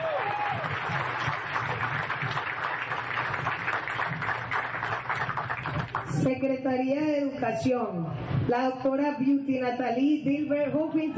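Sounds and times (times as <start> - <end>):
applause: 0.0 - 6.3
speech: 6.3 - 11.1.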